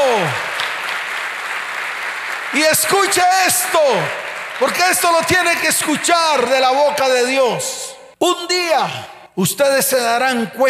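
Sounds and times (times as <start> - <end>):
applause: 0.0 - 7.0
speech: 0.2 - 0.4, 2.5 - 10.6.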